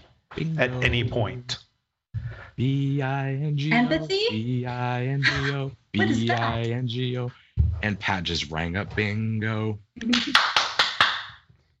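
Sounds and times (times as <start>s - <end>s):
speech: 0.4s - 1.6s, 2.6s - 10.5s
laughter: 5.0s - 6.7s
rhythmic hand claps: 10.0s - 11.5s.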